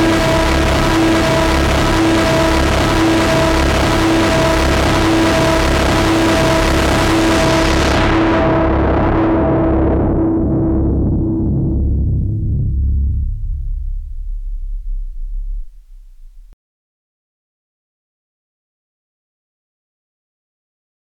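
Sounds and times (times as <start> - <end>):
Korg Monotron Delay analog synthesizer jam: 0.0 - 16.6.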